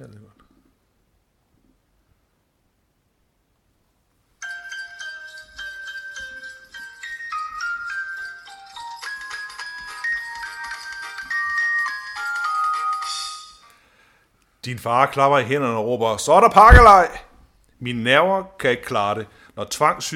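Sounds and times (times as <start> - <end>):
Christmas music, bell-like instrumental melody: 4.4 - 13.7
speech: 14.6 - 20.1.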